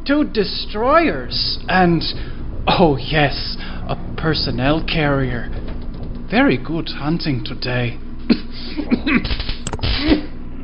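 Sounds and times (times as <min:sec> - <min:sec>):
speech: 0:00.0 - 0:05.6, 0:06.3 - 0:10.3
bad cough: 0:09.8 - 0:10.3.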